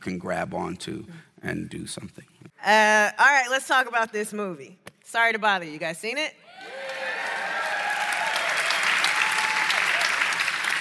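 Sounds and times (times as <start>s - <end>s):
speech: 0.0s - 7.0s
raucous audience applause: 6.6s - 10.7s.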